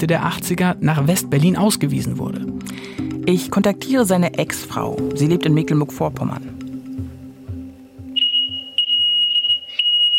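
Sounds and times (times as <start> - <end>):
speech: 0.0 - 6.6
smoke detector beeping: 8.1 - 10.1.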